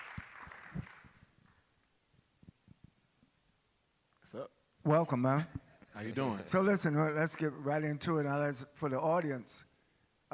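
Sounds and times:
audience applause: 0.0s - 1.2s
speech: 4.3s - 9.7s.

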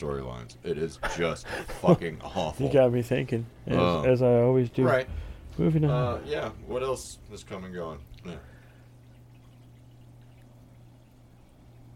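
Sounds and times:
speech: 0.0s - 8.5s
dishwasher running: 3.8s - 11.9s.

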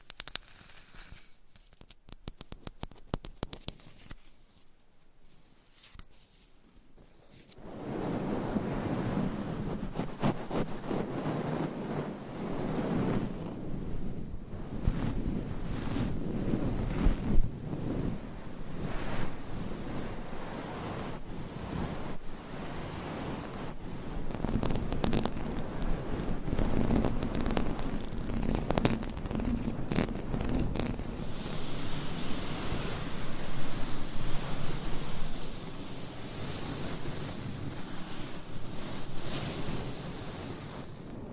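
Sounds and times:
ASMR rough scratching and rubbing: 0.2s - 1.9s, 3.5s - 7.6s, 8.9s - 41.2s
ASMR clicks and taps: 1.6s - 4.2s.

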